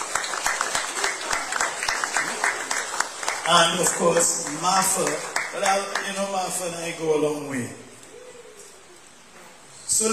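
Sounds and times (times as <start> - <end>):
audience applause: 0.0 - 6.6
speech: 3.5 - 7.9, 10.0 - 10.1.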